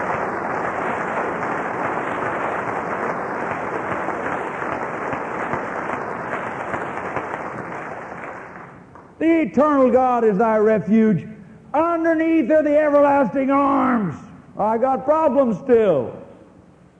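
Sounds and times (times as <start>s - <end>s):
church congregation applauding: 0.0s - 9.2s
speech: 9.5s - 11.3s, 12.1s - 16.2s.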